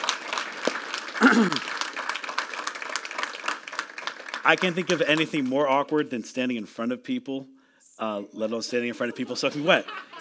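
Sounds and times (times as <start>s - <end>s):
audience applause: 0.0s - 5.8s
speech: 1.2s - 1.8s, 4.4s - 10.1s
laughter: 8.6s - 10.1s.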